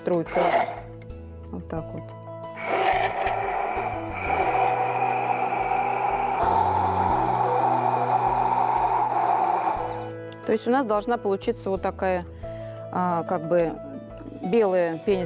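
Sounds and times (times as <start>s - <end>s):
speech: 0.1s - 0.8s, 1.6s - 2.8s, 10.5s - 12.3s, 12.9s - 15.2s
blender whipping vegetable oil: 0.2s - 1.0s, 2.6s - 10.2s.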